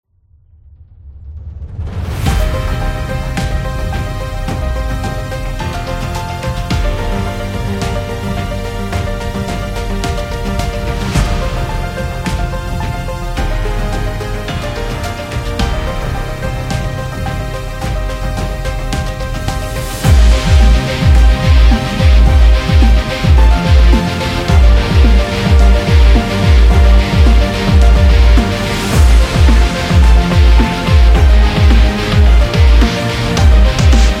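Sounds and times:
epic piano music: 0:01.7 - 0:34.1.

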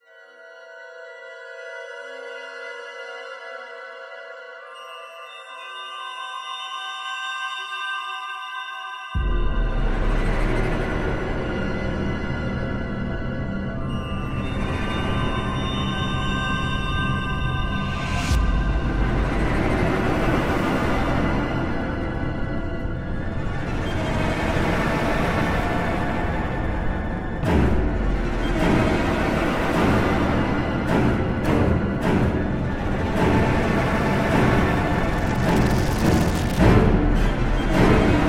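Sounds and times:
tense music: 0:09.2 - 0:38.2.

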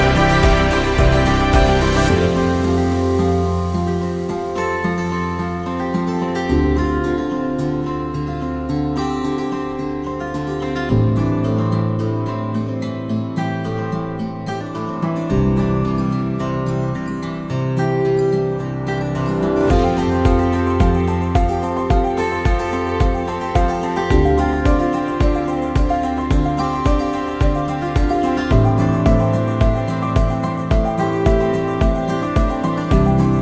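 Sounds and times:
mellow acoustic guitar: 0:00.0 - 0:33.3.

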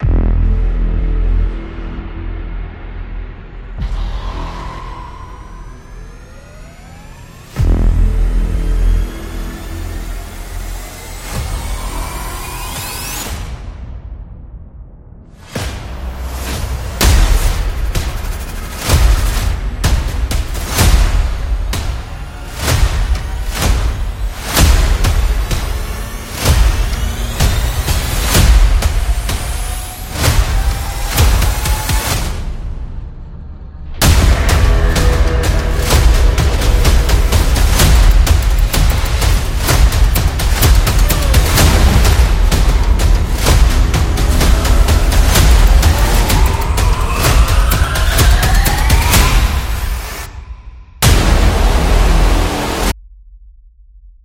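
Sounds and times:
trailer music: 0:00.0 - 0:54.1.

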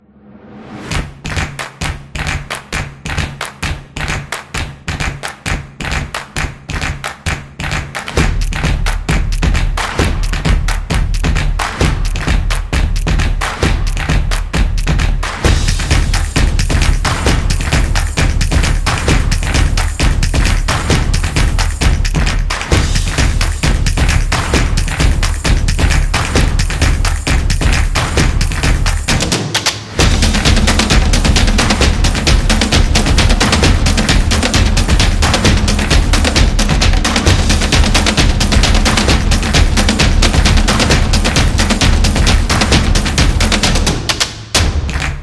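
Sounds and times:
upbeat percussion: 0:00.5 - 0:45.2.

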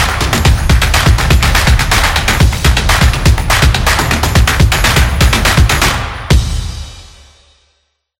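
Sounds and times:
upbeat drums and percussion: 0:00.0 - 0:07.7.

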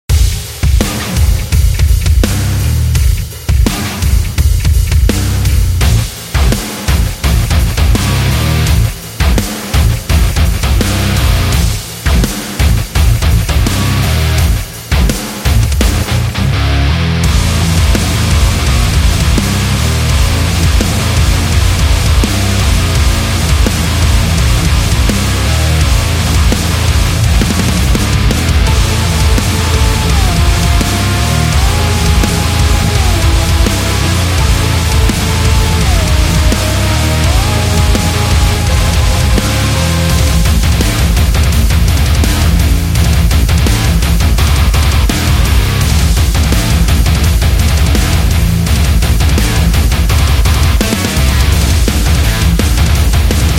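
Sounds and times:
electric guitar: 0:00.1 - 0:53.5.

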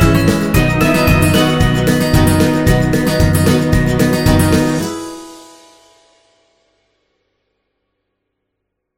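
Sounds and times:
happy summer folk music: 0:00.0 - 0:05.6.

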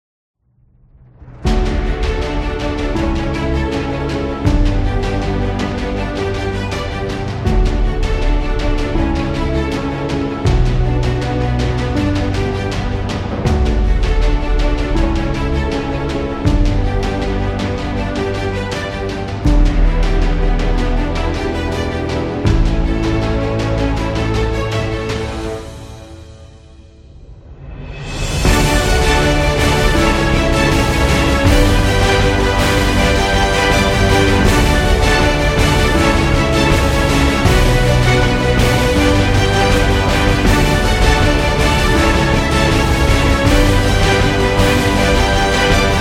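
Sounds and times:
epic positive music: 0:00.8 - 0:45.9.

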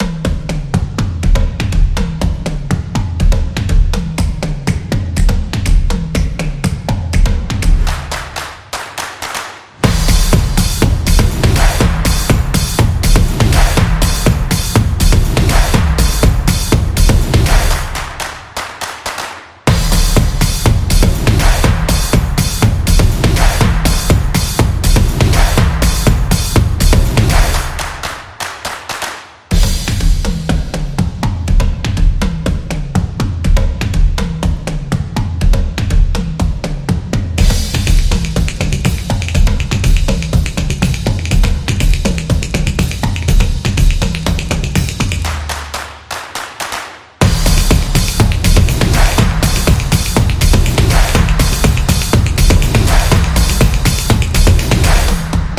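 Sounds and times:
upbeat drum music: 0:00.0 - 0:55.5.

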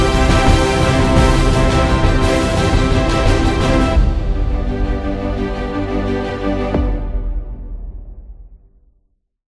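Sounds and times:
epic award sound: 0:00.0 - 0:07.0.

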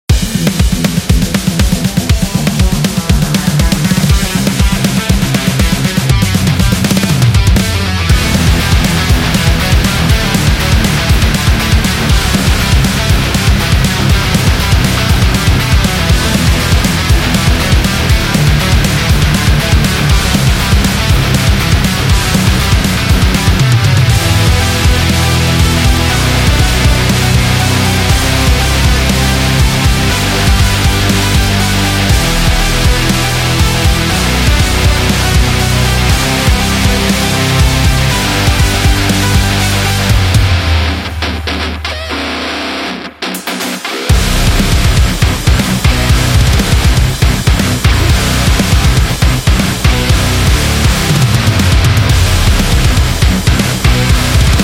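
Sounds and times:
rock music for a promo: 0:00.0 - 0:54.6.

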